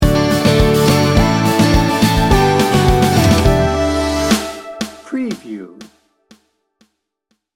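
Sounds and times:
sunshine sting bumper: 0:00.1 - 0:05.8.

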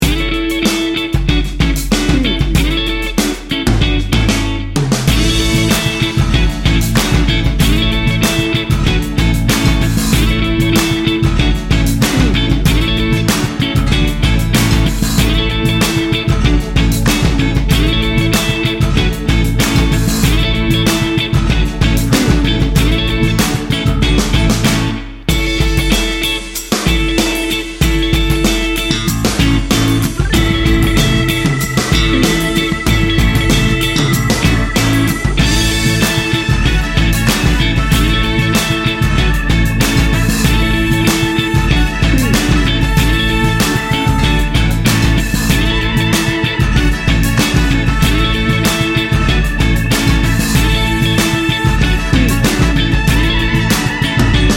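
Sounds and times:
Memphis soul music: 0:00.0 - 0:54.5.

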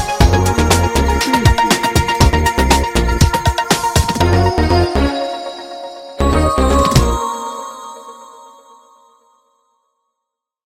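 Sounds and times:
adventure beat: 0:00.0 - 0:07.3.

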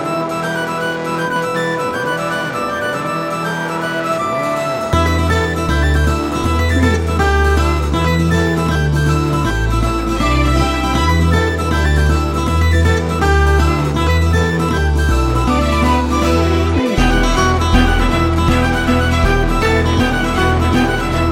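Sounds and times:
heroic Celtic music without drums: 0:00.0 - 0:21.3.

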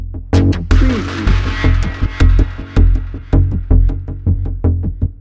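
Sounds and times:
pulsing drone: 0:00.4 - 0:05.1.

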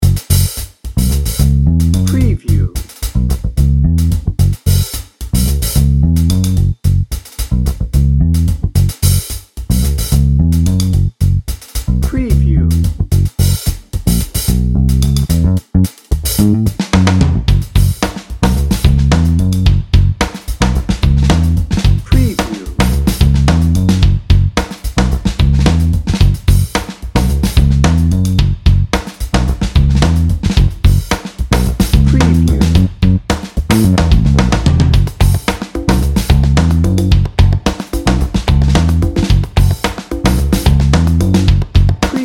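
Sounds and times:
funky drum and bass beat: 0:00.0 - 0:42.2.

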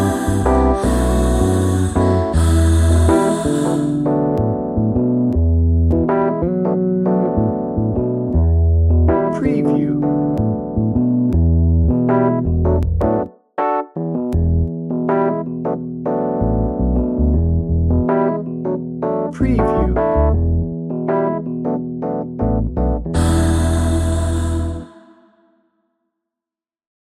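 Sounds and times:
jazzy music bed without drums: 0:00.0 - 0:24.8.

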